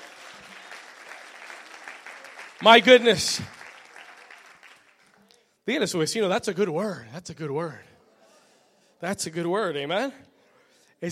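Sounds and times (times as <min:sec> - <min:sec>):
audience applause: 0:00.0 - 0:05.2
speech: 0:02.6 - 0:03.6, 0:05.7 - 0:07.9, 0:09.0 - 0:10.3.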